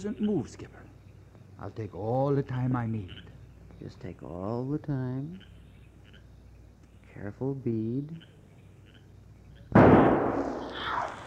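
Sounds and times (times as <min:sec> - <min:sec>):
speech: 0:00.0 - 0:00.9, 0:01.6 - 0:05.5, 0:07.2 - 0:08.3
rifle shot at a wounded mountain lion: 0:09.8 - 0:11.0.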